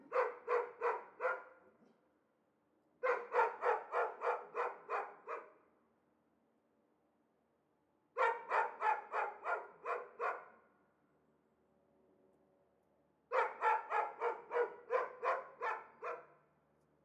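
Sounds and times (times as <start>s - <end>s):
dogs shut in cages barking excitedly: 0.0s - 1.6s, 3.0s - 5.6s, 8.2s - 10.5s, 13.3s - 16.4s.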